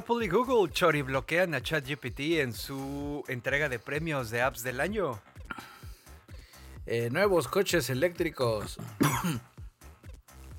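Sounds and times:
speech: 0.1s - 5.7s, 6.9s - 9.5s
harsh coughing after inhaling habanero powder: 5.4s - 5.9s, 8.6s - 9.6s.

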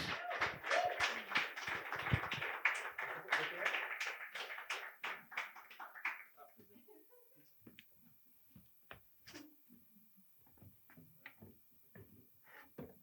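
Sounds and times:
small group applauding: 0.0s - 6.7s.

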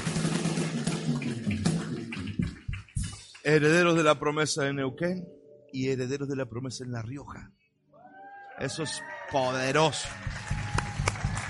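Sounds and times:
audience clapping loudly: 0.0s - 4.1s, 8.8s - 11.4s
speech: 3.4s - 7.6s, 8.6s - 10.6s.

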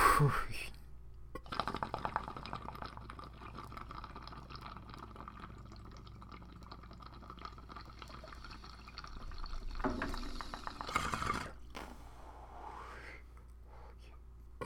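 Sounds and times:
speech: 0.2s - 0.7s
water bubbling in a bong being smoked: 1.4s - 11.7s.

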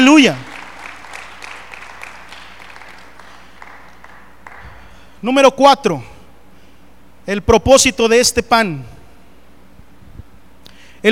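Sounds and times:
audience applause: 0.0s - 5.1s
speech: 0.2s - 0.5s, 5.2s - 6.1s, 7.2s - 9.0s.

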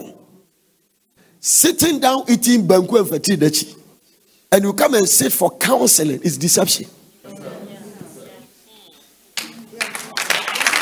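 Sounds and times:
speech: 1.4s - 3.8s, 4.5s - 7.1s
church congregation clapping during a sermon: 9.3s - 10.8s.

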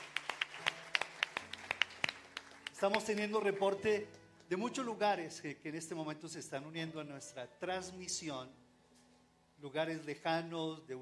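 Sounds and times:
audience applause: 0.0s - 3.7s
speech: 2.8s - 8.6s, 9.6s - 11.0s.

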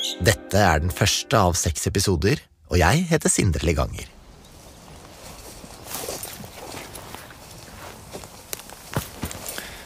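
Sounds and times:
speech: 0.2s - 4.2s
footsteps walking through a forest: 4.2s - 9.8s
twigs breaking underfoot: 8.1s - 9.7s.

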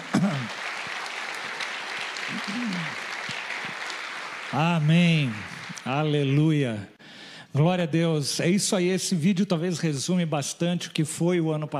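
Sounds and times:
audience applauding: 0.0s - 6.5s
speech: 2.4s - 3.0s, 4.5s - 7.0s, 7.6s - 11.7s.

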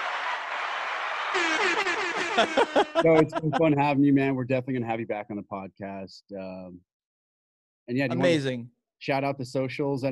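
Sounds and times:
crowd cheering sound effect: 0.0s - 3.9s
laughter: 1.3s - 6.7s, 8.1s - 8.4s
speech: 1.3s - 6.9s, 7.9s - 10.1s.

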